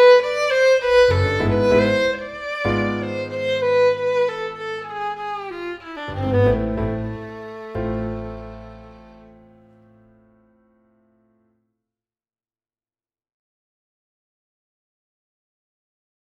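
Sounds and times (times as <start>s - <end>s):
tango music: 0.0s - 10.0s.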